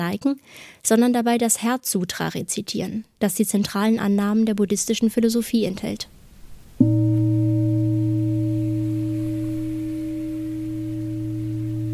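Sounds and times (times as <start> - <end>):
speech: 0.0 - 6.2
gong ringing: 6.8 - 11.9.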